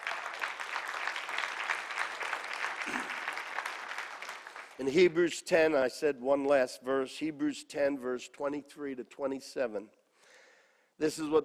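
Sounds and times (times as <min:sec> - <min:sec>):
audience applause: 0:00.0 - 0:05.0
speech: 0:04.8 - 0:10.0, 0:11.0 - 0:11.4.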